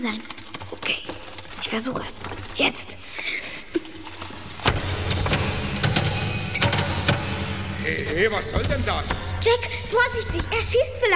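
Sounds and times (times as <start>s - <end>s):
speech: 0.0s - 1.1s, 1.7s - 3.5s, 7.9s - 11.1s
door being shut: 4.6s - 10.7s.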